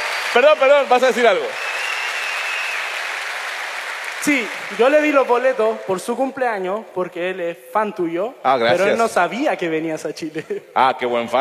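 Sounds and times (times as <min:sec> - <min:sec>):
audience applause: 0:00.0 - 0:06.4
speech: 0:00.4 - 0:01.6, 0:04.2 - 0:11.3.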